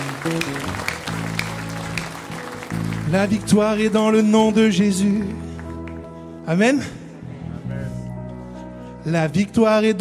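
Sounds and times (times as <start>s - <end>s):
audience applauding and cheering: 0.0s - 6.2s
speech: 0.2s - 1.0s, 3.1s - 5.4s, 6.4s - 7.0s, 9.0s - 9.9s.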